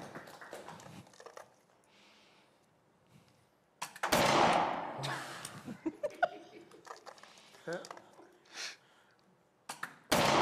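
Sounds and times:
gunshots at tin cans: 0:03.9 - 0:05.1, 0:10.1 - 0:10.4
laughter: 0:05.0 - 0:06.9.

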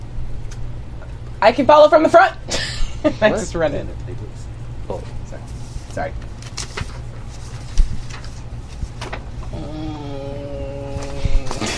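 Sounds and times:
low steady hum: 0:00.0 - 0:11.7
speech: 0:01.4 - 0:05.0, 0:06.0 - 0:06.2
person imitating an upset cat: 0:09.4 - 0:11.7.

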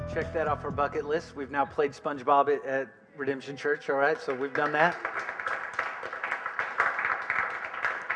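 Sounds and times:
speech: 0:00.1 - 0:05.3
audience clapping: 0:03.9 - 0:08.1.

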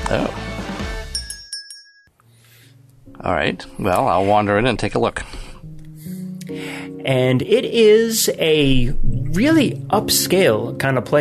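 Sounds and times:
speech: 0:00.1 - 0:00.6, 0:03.2 - 0:05.5, 0:06.5 - 0:11.1
small metal bell over a door dinging: 0:01.1 - 0:02.2.

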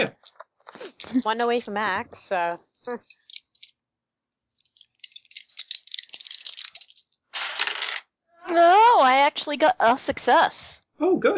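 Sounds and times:
dice rattling during a tabletop game: 0:00.2 - 0:01.9, 0:03.0 - 0:03.7, 0:04.6 - 0:08.0
speech: 0:01.1 - 0:03.2, 0:08.6 - 0:11.3.

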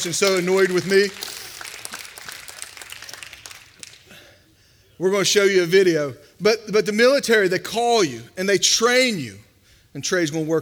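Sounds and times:
speech: 0:00.0 - 0:01.5, 0:05.0 - 0:09.4, 0:10.0 - 0:10.6
audience applause: 0:00.0 - 0:04.0.

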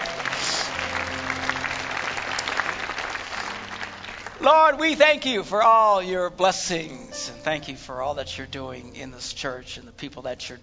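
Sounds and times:
audience applauding: 0:00.0 - 0:05.2
low sustained organ or keyboard chord: 0:00.0 - 0:10.6
speech: 0:04.4 - 0:10.6.

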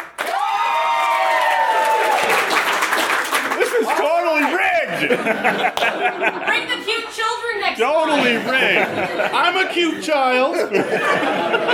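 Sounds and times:
audience applause: 0:00.0 - 0:06.5
laughter: 0:03.4 - 0:07.1, 0:07.8 - 0:11.7
speech: 0:05.0 - 0:11.7.

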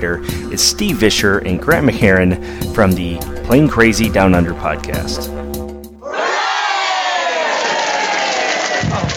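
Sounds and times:
speech: 0:00.0 - 0:05.4
low tone: 0:00.0 - 0:06.0
crowd cheering and screaming in celebration: 0:06.0 - 0:09.0.

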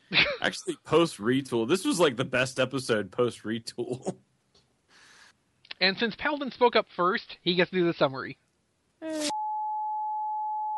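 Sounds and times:
speech: 0:00.4 - 0:04.3, 0:05.8 - 0:08.4
long electronic beep: 0:09.3 - 0:10.7.

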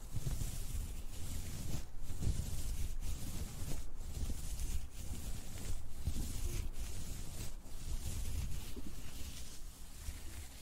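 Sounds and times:
ear massage rubbing rumble: 0:00.0 - 0:10.6
steady soft hiss: 0:00.0 - 0:10.6.

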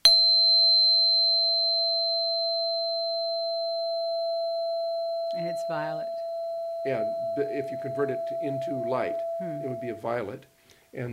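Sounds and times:
666 Hz pure tone: 0:00.0 - 0:10.4
speech: 0:05.4 - 0:06.2, 0:06.8 - 0:11.1.

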